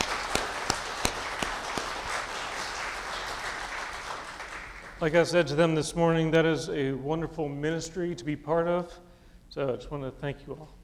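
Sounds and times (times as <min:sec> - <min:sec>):
audience applause: 0:00.0 - 0:05.0
speech: 0:05.0 - 0:10.8.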